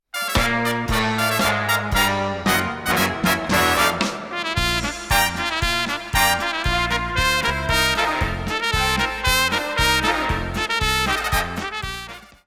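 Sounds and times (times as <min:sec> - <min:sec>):
polka music: 0:00.0 - 0:12.4.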